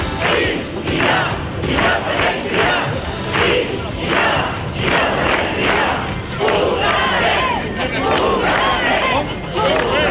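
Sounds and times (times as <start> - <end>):
protest crowd shouting in town square: 0.2 - 10.0.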